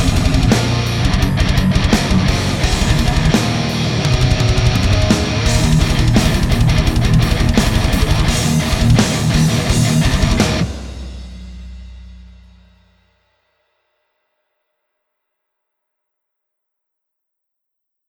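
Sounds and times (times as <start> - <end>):
electric guitar through a tube amplifier at low volume: 0.0 - 11.6.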